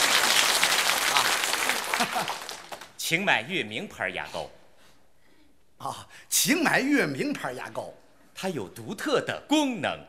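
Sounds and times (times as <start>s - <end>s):
audience applause: 0.0s - 3.0s
speech: 2.0s - 2.5s, 3.1s - 4.6s, 5.8s - 10.0s.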